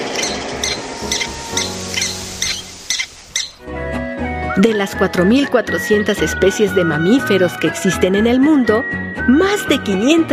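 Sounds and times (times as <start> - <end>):
Mexican prairie dog alarm call: 0.0 - 3.6
speech: 4.6 - 10.3.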